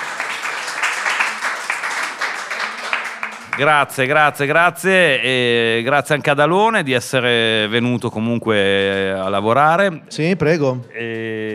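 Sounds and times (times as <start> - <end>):
audience applause: 0.0 - 4.2
speech: 3.6 - 11.5.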